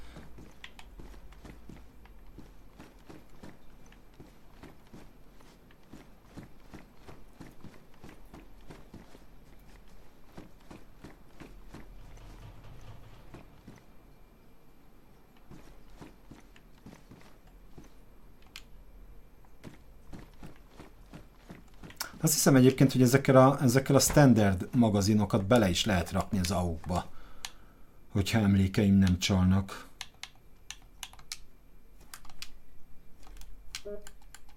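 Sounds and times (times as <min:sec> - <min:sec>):
video game character footsteps walking: 0:00.0 - 0:14.1, 0:15.2 - 0:18.6, 0:19.3 - 0:27.1
speech: 0:22.2 - 0:27.1, 0:28.2 - 0:29.9.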